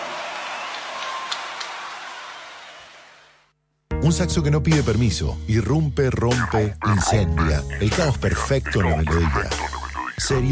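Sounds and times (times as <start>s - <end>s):
audience applause: 0.0s - 3.4s
speech: 4.0s - 10.4s.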